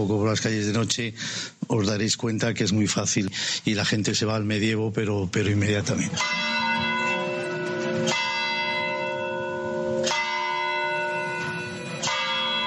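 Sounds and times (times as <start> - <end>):
speech: 0.0 - 6.8
church bells of San Francisco church ringing: 6.1 - 12.6.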